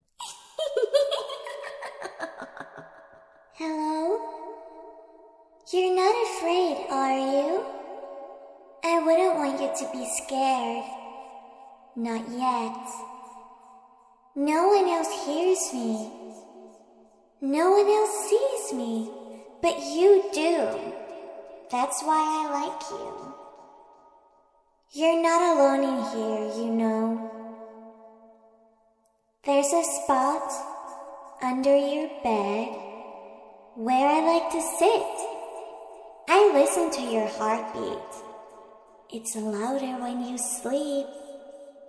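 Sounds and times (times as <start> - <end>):
creepy little girl talking: 0.2 - 2.8, 3.6 - 4.2, 5.7 - 7.7, 8.8 - 10.8, 12.0 - 13.0, 14.4 - 16.1, 17.4 - 20.9, 21.7 - 23.3, 25.0 - 27.2, 29.5 - 30.6, 31.4 - 32.7, 33.8 - 35.2, 36.3 - 38.1, 39.1 - 41.1
creepy little girl laughing: 0.2 - 3.0.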